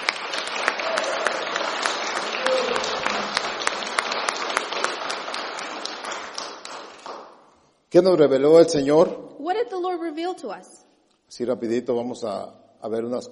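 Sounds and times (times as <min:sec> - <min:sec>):
church congregation applauding: 0:00.0 - 0:07.6
speech: 0:07.9 - 0:13.3.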